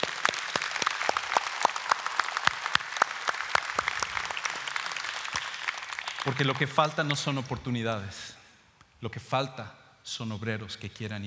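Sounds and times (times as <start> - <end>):
audience applause: 0.0 - 7.3
speech: 6.2 - 8.4, 9.0 - 11.2.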